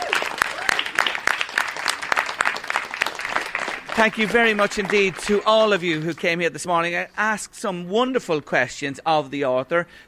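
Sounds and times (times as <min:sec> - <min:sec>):
audience applause: 0:00.0 - 0:06.3
speech: 0:04.0 - 0:10.0.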